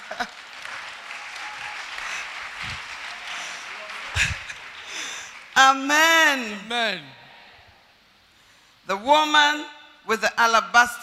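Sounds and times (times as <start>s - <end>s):
audience applause: 0.0s - 5.6s
laughter: 2.0s - 4.9s
speech: 5.6s - 7.2s, 8.9s - 11.0s.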